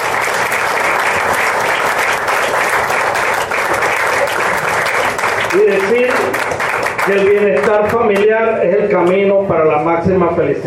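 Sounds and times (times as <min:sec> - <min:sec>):
audience applause: 0:00.0 - 0:08.2
speech: 0:05.5 - 0:06.4, 0:07.1 - 0:10.6.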